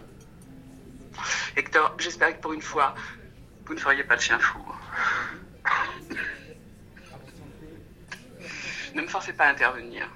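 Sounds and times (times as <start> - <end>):
speech: 1.6 - 5.0, 9.0 - 10.1
person coughing: 5.7 - 6.5.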